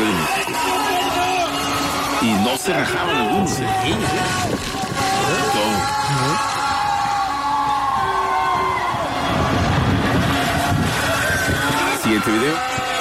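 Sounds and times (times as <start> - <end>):
crowd voices and shouts: 0.0 - 12.9
speech: 2.2 - 4.7, 5.6 - 6.5, 12.1 - 12.7
roar of wind and rain: 3.4 - 12.9.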